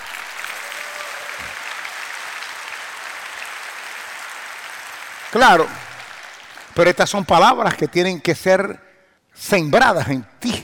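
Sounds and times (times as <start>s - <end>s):
audience applause: 0.0s - 7.1s
speech: 5.3s - 5.8s, 6.8s - 8.8s, 9.4s - 10.6s.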